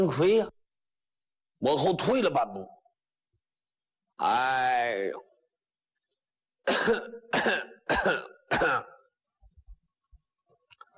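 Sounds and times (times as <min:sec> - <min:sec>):
speech: 0:00.0 - 0:00.6, 0:01.6 - 0:02.8, 0:04.2 - 0:05.3, 0:06.7 - 0:08.9
person coughing: 0:06.6 - 0:09.1.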